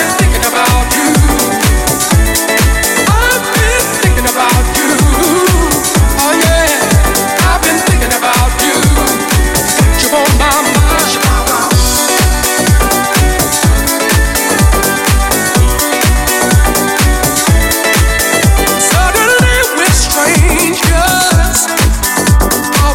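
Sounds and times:
90s drum machine beat: 0.0s - 22.9s.

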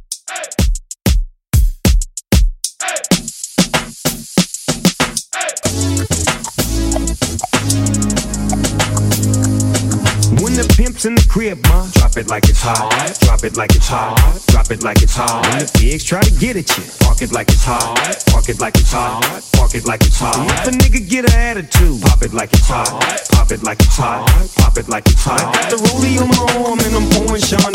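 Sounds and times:
dancehall club music: 0.1s - 0.7s, 2.8s - 27.7s.

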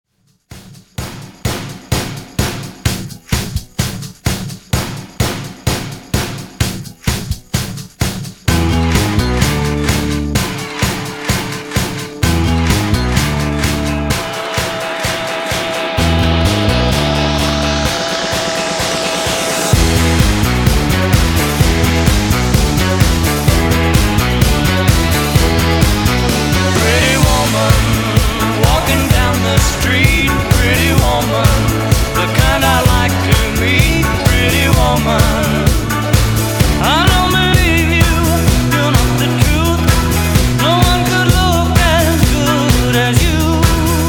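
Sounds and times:
drum: 0.4s - 44.0s.

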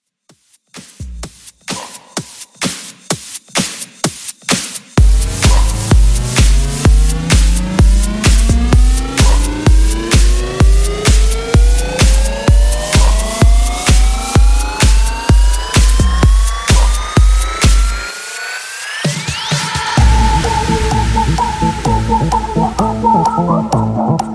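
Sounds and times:
Melbourne Bounce re-drum: 0.0s - 24.3s.

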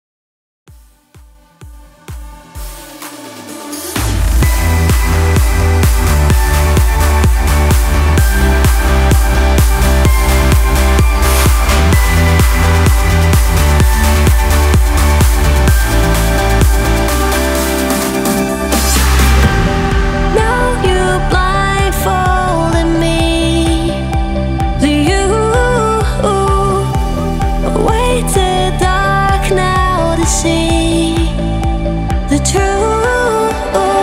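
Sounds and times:
progressive house music at 128 BPM: 0.7s - 34.0s.

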